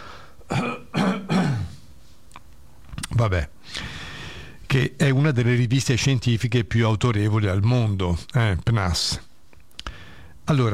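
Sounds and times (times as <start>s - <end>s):
person clearing a throat dry from dehumidified air: 0.5s - 1.8s
speech: 3.2s - 3.9s, 4.7s - 9.3s, 10.5s - 10.7s.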